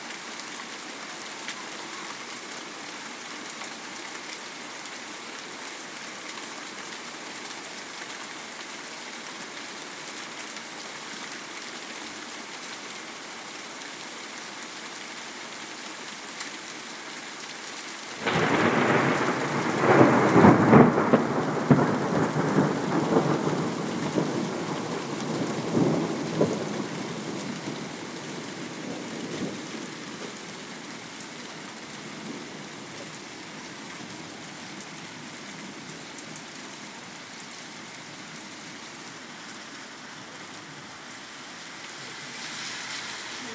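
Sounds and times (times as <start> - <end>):
rain: 0.0 - 43.5
thunder: 18.2 - 26.9
hail: 18.2 - 31.3.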